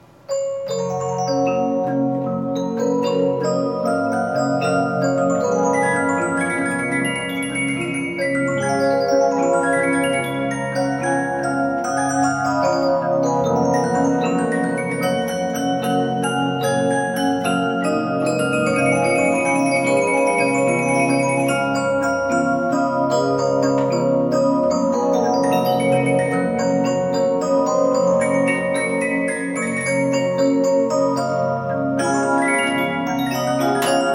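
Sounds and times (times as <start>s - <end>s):
Regina music box with short bedplate: 0.0s - 34.1s.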